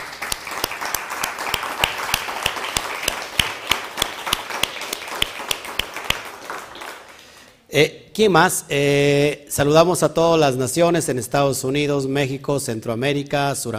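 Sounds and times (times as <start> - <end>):
crowd applauding: 0.0 - 7.6
speech: 7.7 - 13.7.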